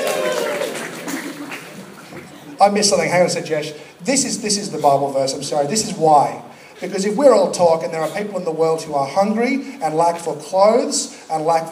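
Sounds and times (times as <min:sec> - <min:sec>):
audience applause: 0:00.0 - 0:02.4
speech: 0:02.6 - 0:11.7.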